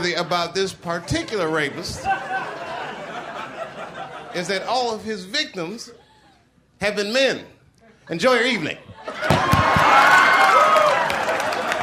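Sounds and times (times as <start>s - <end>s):
speech: 0.1s - 2.6s, 4.4s - 6.0s, 6.8s - 10.2s
laughter: 0.9s - 4.8s, 8.8s - 9.9s
audience applause: 9.2s - 11.8s.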